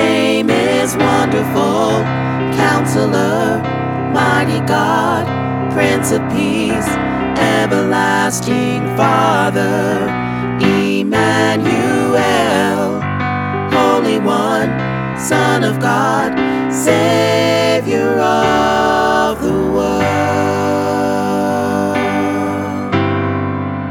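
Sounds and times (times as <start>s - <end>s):
full choir singing: 0.0s - 23.8s.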